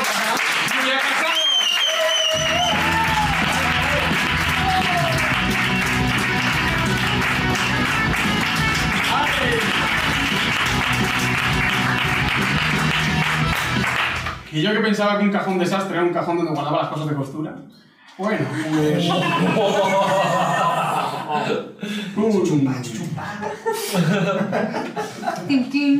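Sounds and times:
loud audience applause: 0:00.0 - 0:14.5
speech: 0:14.6 - 0:25.9
laughter: 0:18.4 - 0:21.7, 0:23.0 - 0:25.9.

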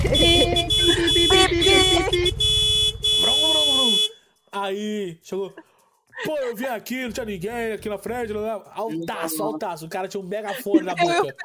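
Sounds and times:
laughter: 0:00.0 - 0:02.3, 0:05.3 - 0:07.2, 0:08.8 - 0:11.4
voice imitating a motorcycle horn: 0:00.0 - 0:04.1
speech: 0:04.7 - 0:11.4.

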